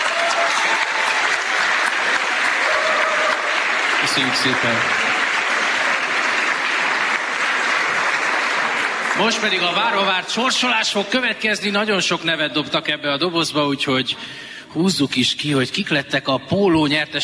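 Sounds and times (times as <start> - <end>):
crowd clapping: 0.0 - 10.8
speech: 4.2 - 5.1, 9.2 - 17.2.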